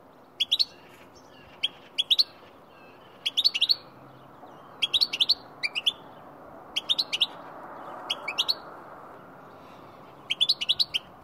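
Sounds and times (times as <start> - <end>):
goldfinch calling: 0.4 - 3.9, 4.7 - 6.0, 6.8 - 7.4, 8.1 - 8.6, 10.3 - 11.1.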